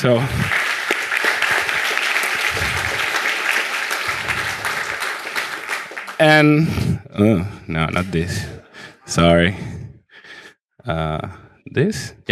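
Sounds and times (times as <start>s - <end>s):
speech: 0.0s - 0.6s, 6.2s - 9.7s, 10.8s - 12.3s
audience applause: 0.0s - 6.7s.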